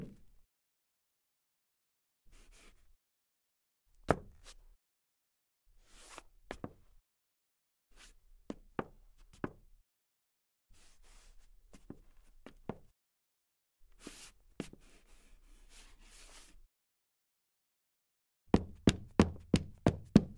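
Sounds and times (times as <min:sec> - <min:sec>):
dress boot footsteps on wood parquet: 0:18.6 - 0:20.3.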